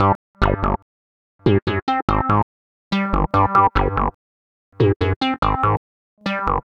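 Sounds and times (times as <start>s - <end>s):
crunch synth keyboards: 1.5s - 4.2s, 4.8s - 6.6s.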